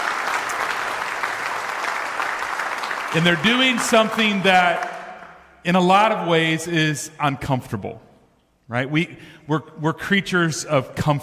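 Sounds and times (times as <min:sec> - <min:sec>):
audience applause: 0:00.0 - 0:05.4
speech: 0:03.1 - 0:04.9, 0:05.6 - 0:08.1, 0:08.7 - 0:11.2.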